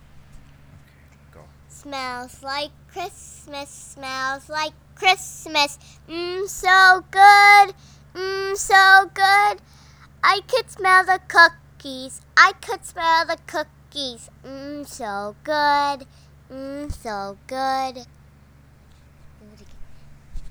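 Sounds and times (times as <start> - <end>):
preschool class singing a Christmas song: 1.8 - 18.0.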